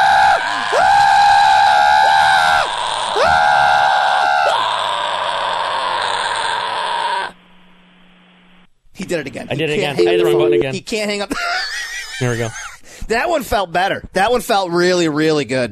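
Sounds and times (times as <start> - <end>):
person screaming and yelling: 0.0 - 7.4
speech: 9.1 - 11.6, 12.2 - 15.7.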